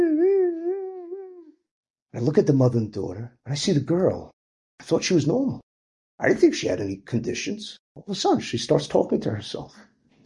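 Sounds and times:
voice imitating an ambulance siren: 0:00.0 - 0:01.5
speech: 0:02.2 - 0:09.9.

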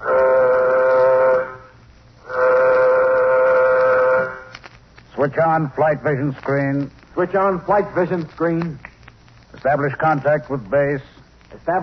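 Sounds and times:
spaceship warning signal in a radio drama: 0:00.0 - 0:04.5
speech: 0:05.2 - 0:08.8, 0:09.6 - 0:11.8.

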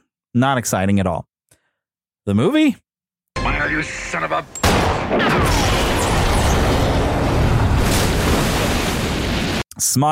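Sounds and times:
speech: 0:00.4 - 0:01.3, 0:02.3 - 0:02.8, 0:03.4 - 0:05.9, 0:09.8 - 0:10.0
movie explosion of a shot shark: 0:04.6 - 0:09.6.

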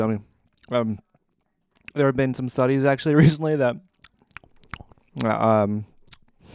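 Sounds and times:
speech: 0:00.0 - 0:01.1, 0:01.9 - 0:03.9, 0:05.2 - 0:05.9
nuts being chewed close to the microphone: 0:00.5 - 0:02.0, 0:03.9 - 0:06.4.

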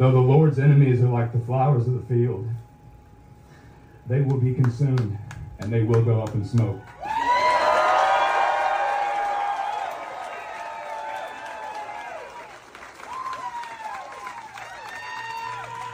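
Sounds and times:
speech: 0:00.0 - 0:02.6, 0:04.1 - 0:07.0
thunderous applause from a large concert crowd: 0:06.6 - 0:15.9.

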